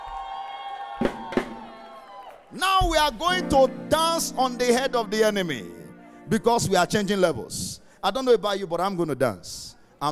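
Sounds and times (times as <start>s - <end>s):
crowd cheering and shouting: 0.0s - 3.4s
speech: 2.5s - 10.1s.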